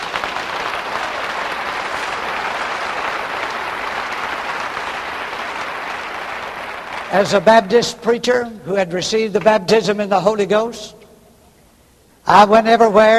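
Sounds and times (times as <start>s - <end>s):
audience applause: 0.0s - 7.4s
speech: 7.1s - 11.0s, 12.3s - 13.1s.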